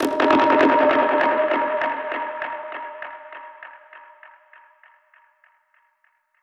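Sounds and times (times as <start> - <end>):
dub percussion hit: 0.0 - 1.5.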